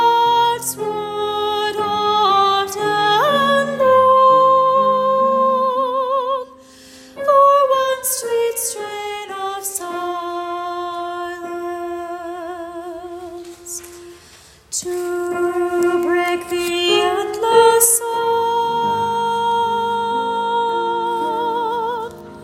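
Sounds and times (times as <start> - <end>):
soprano: 0.0 - 22.4.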